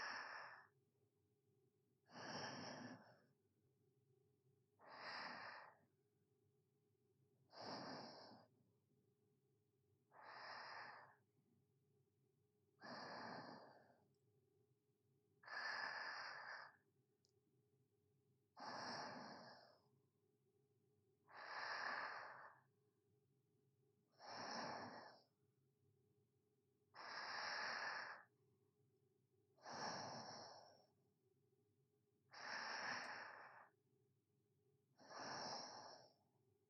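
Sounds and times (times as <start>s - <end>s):
sleeping breathing ASMR: 0.0s - 0.7s, 2.1s - 3.3s, 4.8s - 5.8s, 7.5s - 8.5s, 10.1s - 11.2s, 12.8s - 14.0s, 15.4s - 16.8s, 18.6s - 19.9s, 21.3s - 22.7s, 24.2s - 25.3s, 27.0s - 28.3s, 29.6s - 30.9s, 32.3s - 33.8s, 35.0s - 36.2s.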